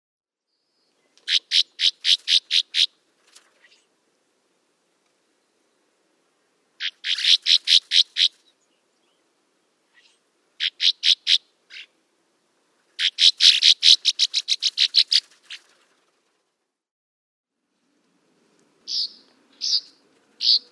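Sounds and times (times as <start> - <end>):
northern rough-winged swallow rough buzzy calls: 1.3 - 2.9, 6.8 - 8.4, 9.9 - 11.9, 13.0 - 15.8.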